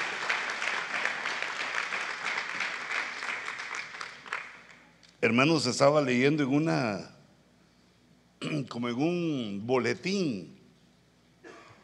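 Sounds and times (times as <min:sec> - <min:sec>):
audience applause: 0:00.0 - 0:04.8
speech: 0:05.2 - 0:07.2, 0:08.6 - 0:10.6.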